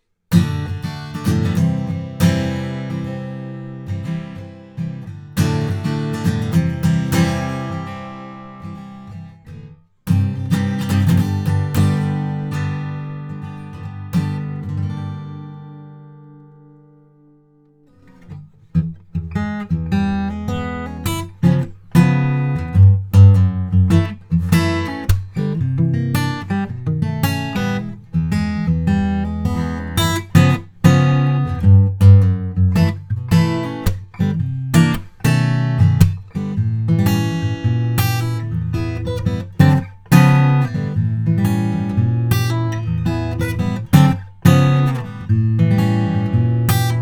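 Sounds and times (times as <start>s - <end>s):
acoustic guitar recorded with Warm Audio WA-19 and t.bone SC400: 0.0s - 47.0s.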